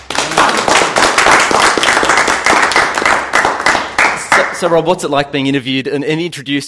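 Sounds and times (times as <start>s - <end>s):
audience clapping: 0.0s - 4.8s
speech: 4.6s - 6.6s.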